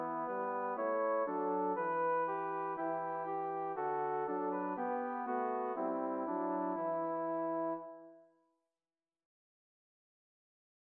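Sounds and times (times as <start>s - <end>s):
brass accompaniment: 0.0s - 8.0s.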